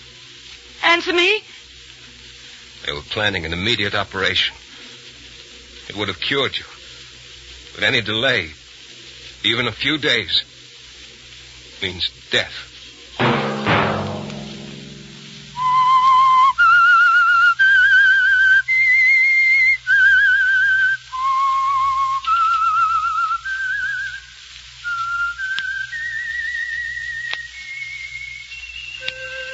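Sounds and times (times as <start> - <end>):
speech: 0.9 - 1.6, 2.8 - 4.6, 5.9 - 6.7, 7.8 - 8.6, 9.4 - 10.5, 11.8 - 12.7
lone whistler whistling a slow theme melody: 15.5 - 24.2, 24.8 - 29.5.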